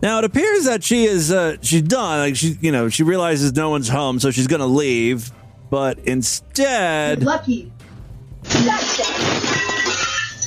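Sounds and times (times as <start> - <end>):
speech: 0.0 - 7.8, 8.4 - 9.7
window glass shattering from a punch: 8.5 - 10.4.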